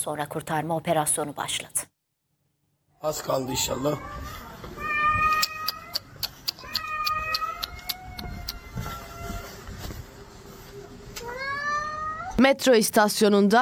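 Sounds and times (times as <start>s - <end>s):
speech: 0.0s - 1.9s, 3.0s - 4.4s, 12.4s - 13.6s
cat with paw caught in escalator crying in pain: 3.3s - 9.6s, 11.2s - 12.4s.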